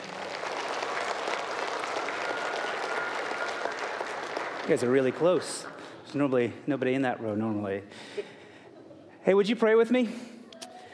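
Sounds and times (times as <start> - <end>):
audience applause: 0.0 - 6.1
speech: 4.7 - 8.3, 9.2 - 10.3.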